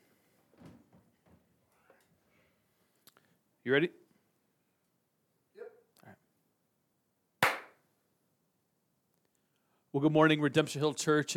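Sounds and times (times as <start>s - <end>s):
speech: 3.6s - 4.0s, 10.0s - 11.3s
hand clap for video sync: 7.4s - 7.8s.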